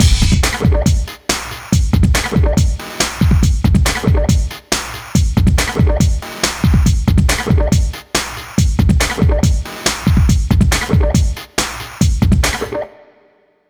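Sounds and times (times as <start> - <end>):
hardcore breakbeat in B major: 0.0 - 12.9.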